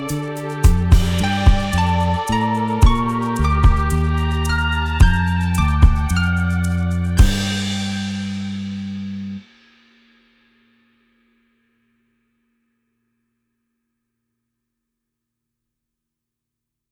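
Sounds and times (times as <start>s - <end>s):
creepy beat: 0.0s - 9.0s.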